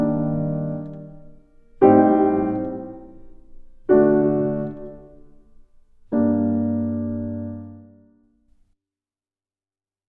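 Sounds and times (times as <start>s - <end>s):
instrumental backing track: 0.0s - 7.9s.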